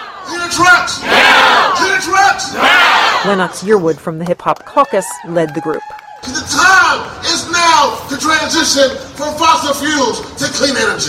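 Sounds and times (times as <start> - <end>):
speech: 0.5 - 1.3, 2.0 - 11.0
protesters chanting outside Postal Service headquarters in D.C.: 1.0 - 1.8, 2.5 - 3.2.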